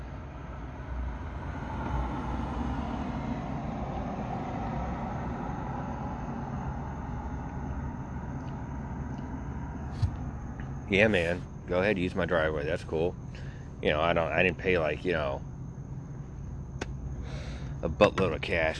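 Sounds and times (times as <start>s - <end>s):
car driving past a house: 0.0s - 10.9s
speech: 10.9s - 15.5s, 17.8s - 18.7s.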